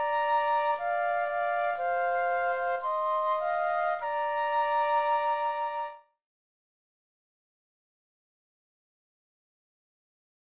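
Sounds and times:
flute duet: 0.0s - 6.2s.

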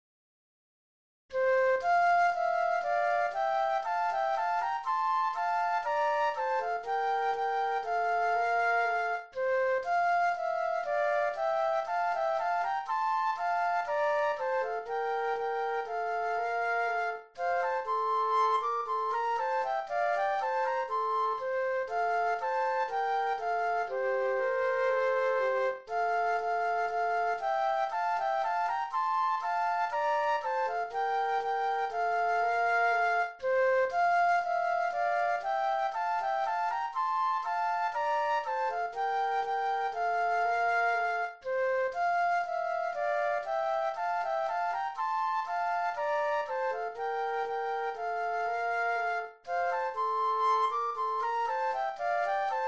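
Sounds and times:
flute duet: 1.3s - 52.6s.

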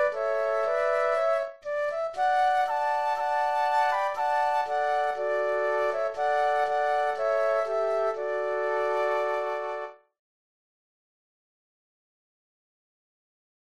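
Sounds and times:
flute trio playing: 0.0s - 10.0s.

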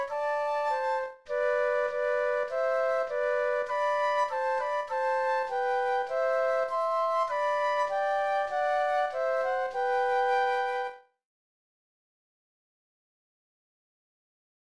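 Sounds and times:
flute duet: 0.0s - 11.1s.

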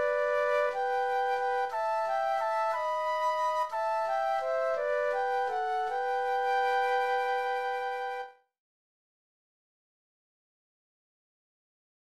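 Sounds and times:
flute duet: 0.0s - 8.5s.

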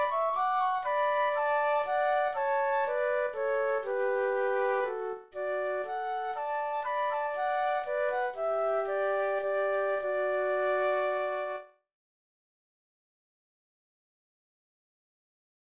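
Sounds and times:
flute duet: 0.0s - 11.8s.

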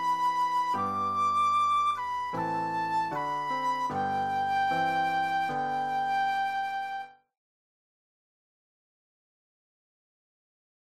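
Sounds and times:
flute solo: 0.0s - 7.2s.

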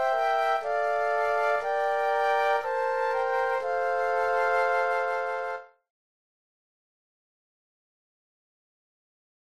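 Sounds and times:
flute trio playing: 0.0s - 5.8s.

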